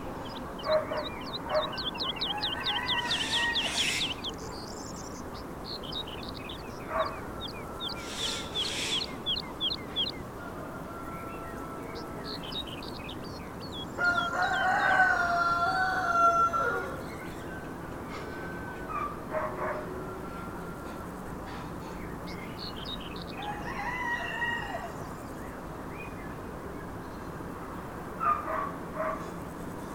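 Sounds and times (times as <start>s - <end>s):
small birds chirping: 0.0s - 17.8s, 19.8s - 28.0s
background hiss: 0.0s - 29.9s
rooster crowing: 0.4s - 4.4s, 6.9s - 9.2s, 10.0s - 21.1s, 23.3s - 25.0s.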